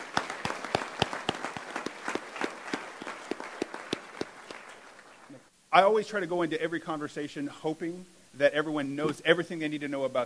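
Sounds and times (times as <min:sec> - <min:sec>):
round of applause from a small group: 0:00.0 - 0:05.3
speech: 0:05.7 - 0:10.2.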